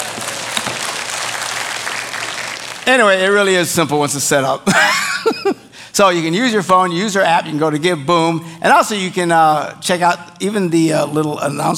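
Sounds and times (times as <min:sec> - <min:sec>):
audience applause: 0:00.0 - 0:02.9
speech: 0:02.9 - 0:11.7
laughter: 0:04.7 - 0:05.7.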